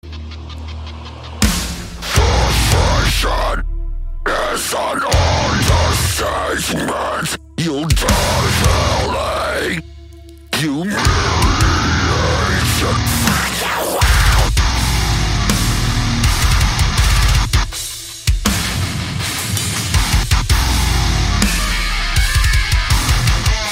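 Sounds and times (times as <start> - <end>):
heavy music breakdown: 0.1 - 23.7.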